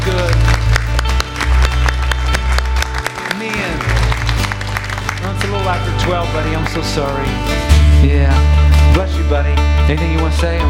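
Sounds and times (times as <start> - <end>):
audience applause: 0.0 - 7.2
speech: 6.2 - 10.6.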